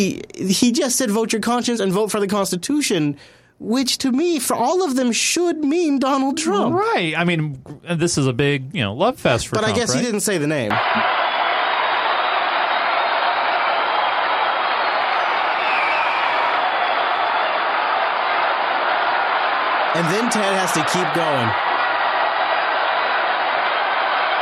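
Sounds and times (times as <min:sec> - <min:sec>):
speech: 0:00.0 - 0:11.2, 0:20.0 - 0:21.8
convention crowd booing: 0:10.7 - 0:24.3.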